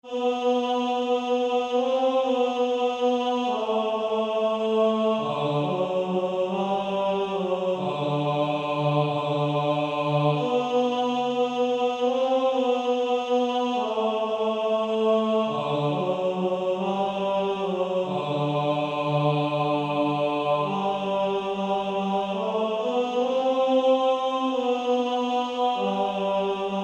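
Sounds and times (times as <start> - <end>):
male choir singing: 0.0 - 26.8.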